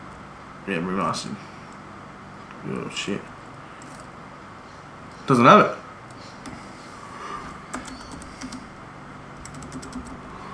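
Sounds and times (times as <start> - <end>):
speech: 0.7 - 1.6, 2.6 - 3.4, 5.3 - 5.8
typing on a computer keyboard: 3.8 - 4.1, 6.1 - 6.6, 7.7 - 8.7, 9.4 - 10.3.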